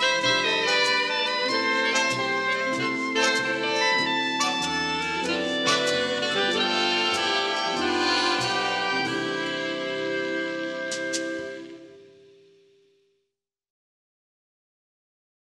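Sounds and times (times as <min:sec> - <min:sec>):
romantic orchestral music: 0:00.0 - 0:12.0.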